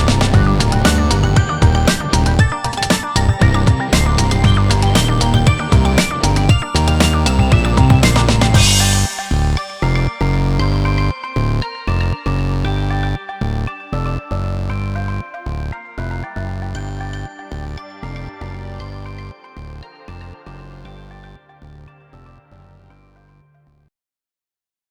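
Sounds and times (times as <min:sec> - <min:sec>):
funk indie game music: 0:00.0 - 0:15.2.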